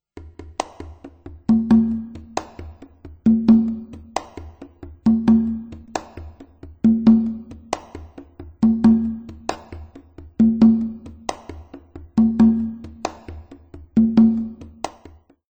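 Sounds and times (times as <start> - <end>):
congas: 0.0 - 15.4.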